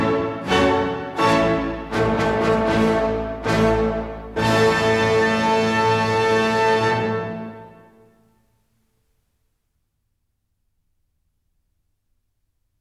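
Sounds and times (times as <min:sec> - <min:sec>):
piano concerto: 0:00.0 - 0:07.8.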